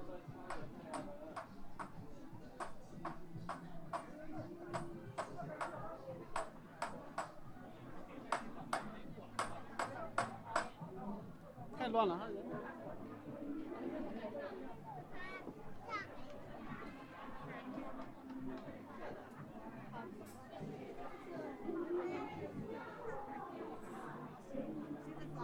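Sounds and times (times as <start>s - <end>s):
crowd chattering at Hongyadong in Chongqing: 0.0s - 25.4s.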